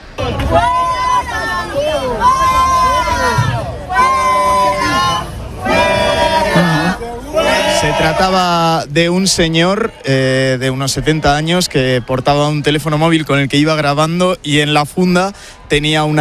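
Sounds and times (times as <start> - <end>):
protesters crowding and shouting at a man: 0.1 - 8.8
speech: 7.8 - 16.2.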